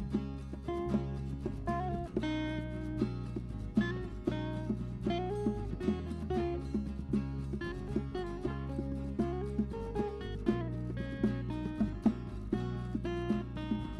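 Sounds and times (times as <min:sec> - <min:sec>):
original accompaniment: 0:00.0 - 0:13.9.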